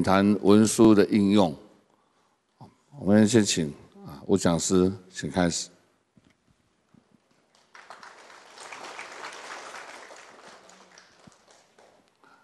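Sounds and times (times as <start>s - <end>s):
speech: 0.0s - 1.6s, 3.0s - 5.7s
audience applause: 7.3s - 12.4s.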